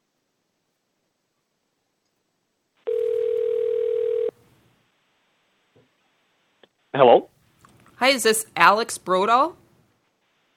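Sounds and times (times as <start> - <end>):
telephone dial tone on a call line during a Public Service Commission hearing: 2.9 - 4.3
speech: 7.0 - 7.3, 8.0 - 9.6.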